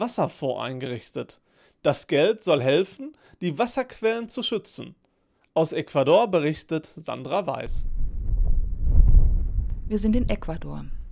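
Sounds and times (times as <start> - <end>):
speech: 0.0 - 5.0, 5.6 - 8.0, 9.9 - 11.0
whistling wind in high moorland: 7.8 - 11.1.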